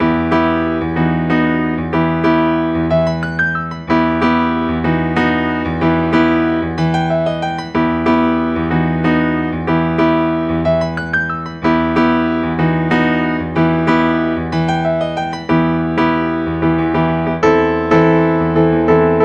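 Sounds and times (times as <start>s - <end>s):
piano piece: 0.0s - 19.2s.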